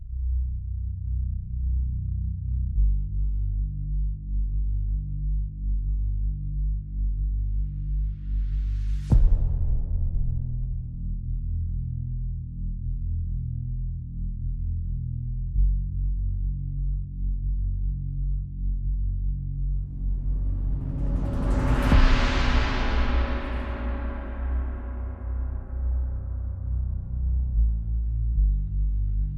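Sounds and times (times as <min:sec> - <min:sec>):
bass: 0:00.0 - 0:29.3
drums: 0:08.2 - 0:11.4, 0:19.7 - 0:26.7.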